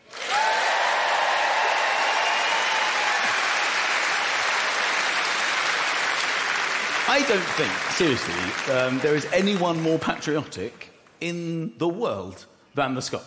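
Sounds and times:
crowd applause: 0:00.0 - 0:10.5
speech: 0:07.1 - 0:13.2.

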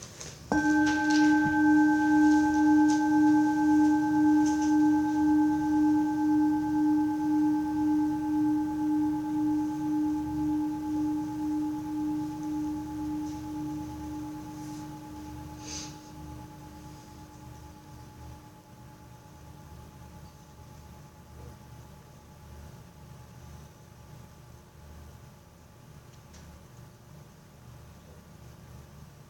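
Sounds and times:
bell ringing: 0:00.5 - 0:19.1.

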